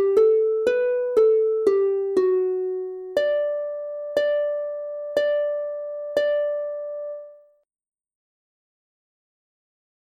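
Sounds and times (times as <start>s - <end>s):
instrumental canon on harp: 0.0s - 7.4s.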